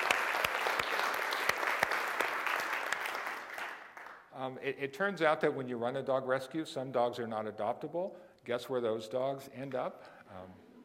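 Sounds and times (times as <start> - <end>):
crowd applause: 0.0 - 4.2
speech: 4.5 - 10.6.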